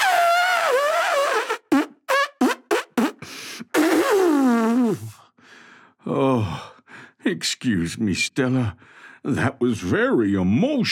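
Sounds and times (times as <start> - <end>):
person blowing nose loudly: 0.0 - 5.2
speech: 6.1 - 6.5, 7.3 - 10.9.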